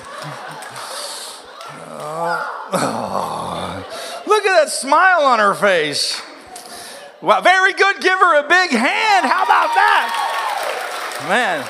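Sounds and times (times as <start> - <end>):
laughter: 0.0 - 4.5
voice imitating a cat's purr: 2.7 - 3.8
speech: 4.7 - 6.2, 7.2 - 10.2, 11.2 - 11.6.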